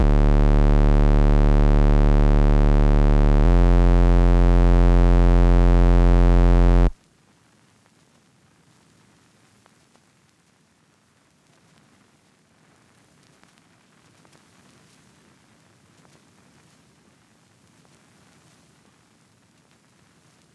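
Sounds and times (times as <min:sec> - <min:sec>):
140 BPM bass line in D minor: 0:00.0 - 0:07.0.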